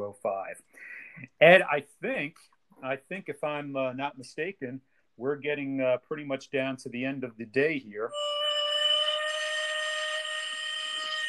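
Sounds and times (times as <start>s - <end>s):
speech: 0.1s - 8.4s
end-of-day whistle: 8.1s - 11.2s.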